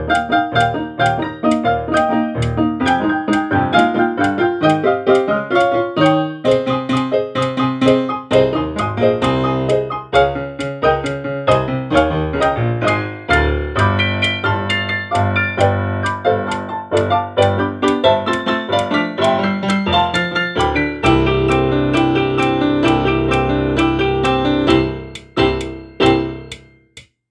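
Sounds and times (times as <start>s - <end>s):
fantasy-style duet music: 0.2s - 26.8s.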